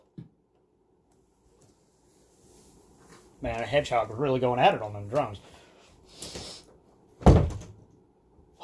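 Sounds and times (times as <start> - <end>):
speech: 3.4 - 5.5
door opening and closing: 7.2 - 7.8.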